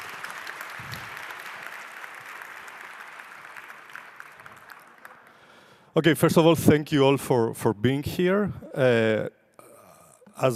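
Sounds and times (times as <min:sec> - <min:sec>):
audience applause: 0:00.0 - 0:05.8
speech: 0:06.0 - 0:09.4, 0:10.4 - 0:10.5.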